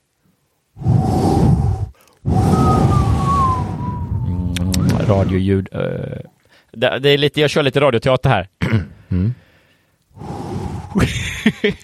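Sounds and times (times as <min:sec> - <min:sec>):
howling storm wind gusts: 0:00.8 - 0:05.6, 0:10.1 - 0:11.2
thin whistling tones: 0:02.3 - 0:05.4
speech: 0:05.1 - 0:09.4, 0:10.2 - 0:11.8.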